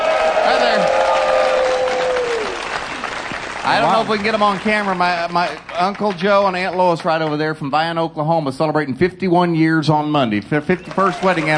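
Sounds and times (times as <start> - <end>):
studio audience applauding: 0.0 - 8.0, 10.7 - 11.5
speech: 3.7 - 11.5.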